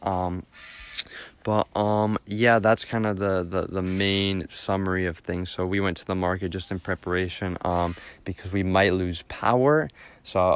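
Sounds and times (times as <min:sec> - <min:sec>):
speech: 0:00.0 - 0:10.5
bird making noises: 0:00.3 - 0:01.2, 0:03.6 - 0:04.5, 0:06.6 - 0:08.7.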